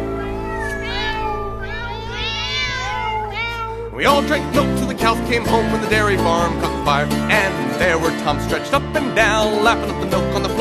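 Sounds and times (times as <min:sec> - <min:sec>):
cat meowing: 0:00.0 - 0:04.0
speech: 0:04.0 - 0:10.5.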